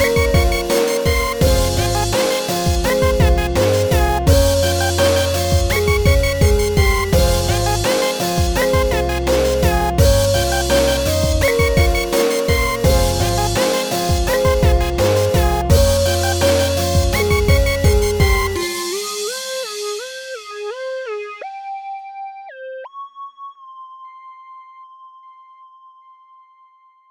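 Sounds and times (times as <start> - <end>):
dark background music: 0.0 - 18.9.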